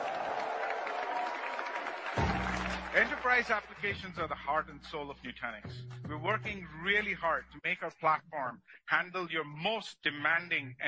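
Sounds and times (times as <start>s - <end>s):
audience applause: 0.0s - 4.3s
speech: 3.0s - 10.8s.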